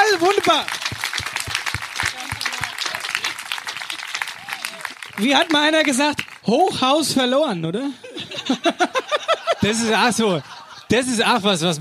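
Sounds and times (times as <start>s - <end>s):
audience applause: 0.0s - 6.5s
speech: 0.4s - 0.9s, 5.2s - 11.7s
laughter: 2.1s - 5.2s, 7.8s - 11.4s.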